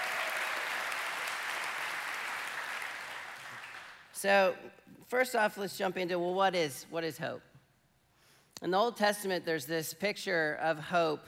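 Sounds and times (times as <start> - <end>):
audience clapping hands: 0.0 - 4.1
speech: 4.2 - 7.5, 8.6 - 11.2.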